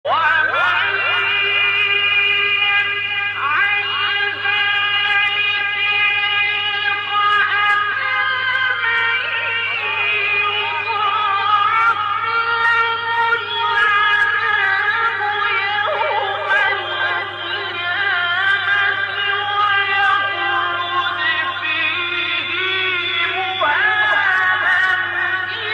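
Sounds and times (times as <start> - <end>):
Quran recitation: 0.0 - 25.7.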